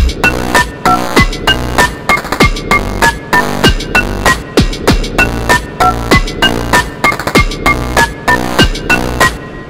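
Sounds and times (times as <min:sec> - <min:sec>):
phone alarm funk tune: 0:00.0 - 0:09.5.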